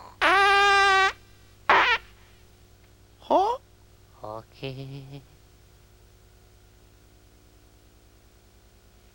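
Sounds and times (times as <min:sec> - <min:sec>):
squeaky buzzy farts: 0:00.0 - 0:02.0.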